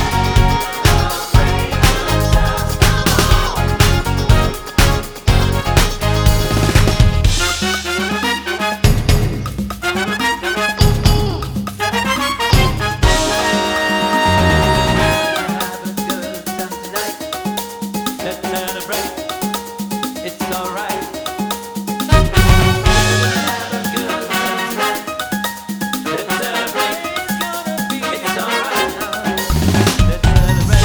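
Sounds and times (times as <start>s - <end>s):
backing music: 0.0s - 30.8s
piano in A flat minor: 0.0s - 30.8s.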